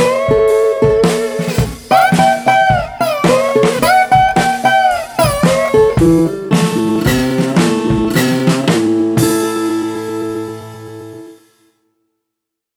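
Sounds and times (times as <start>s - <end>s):
snare drum: 0.0s - 9.4s
street resonator guitar: 0.0s - 11.4s.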